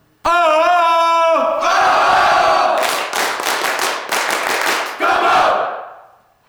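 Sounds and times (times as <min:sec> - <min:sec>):
people cheering: 0:00.3 - 0:06.0.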